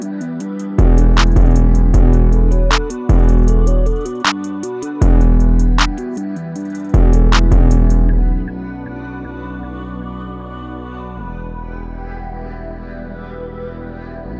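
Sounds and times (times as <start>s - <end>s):
digital pop music in E minor at 156 BPM: 0.0s - 10.1s.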